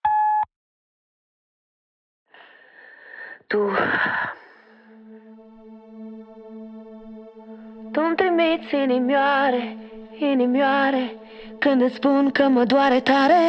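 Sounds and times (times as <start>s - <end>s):
voicemail beep tone: 0.0s - 0.5s
speech: 3.5s - 4.4s, 8.4s - 13.4s.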